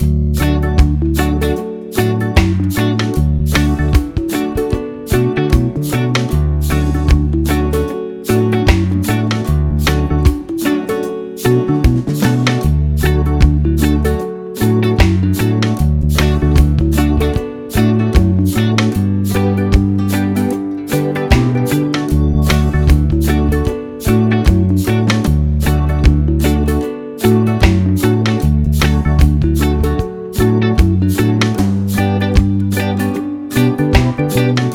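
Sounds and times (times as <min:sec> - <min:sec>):
instrumental music: 0:00.0 - 0:34.7.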